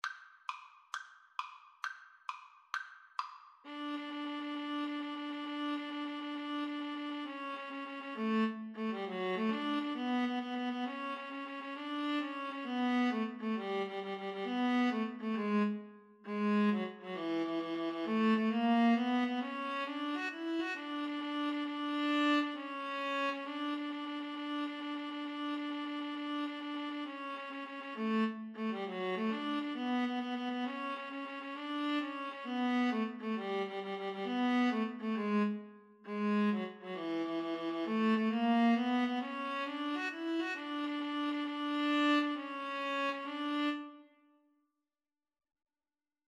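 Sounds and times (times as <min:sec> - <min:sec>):
viola: 0:03.6 - 0:44.2.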